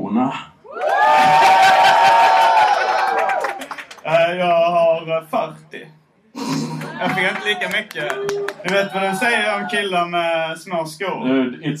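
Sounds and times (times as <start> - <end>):
speech: 0.1 - 1.6, 4.3 - 11.7
crowd cheering with high whoops: 0.7 - 3.8, 6.6 - 10.0
applause: 0.8 - 4.2, 6.5 - 9.2.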